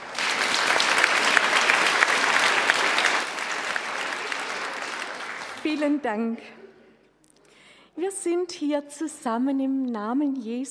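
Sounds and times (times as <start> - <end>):
audience applause: 0.0 - 6.0
speech: 5.6 - 6.6, 8.0 - 10.6.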